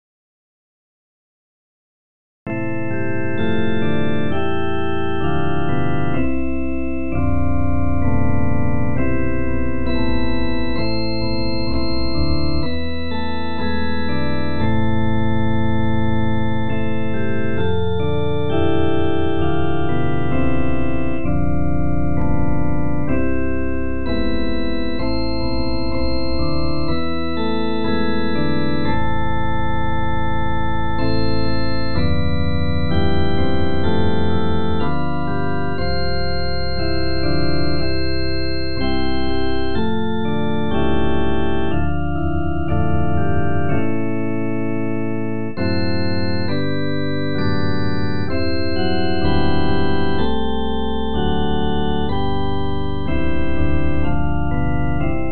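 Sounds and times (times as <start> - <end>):
instrumental hymns: 2.5 - 55.3.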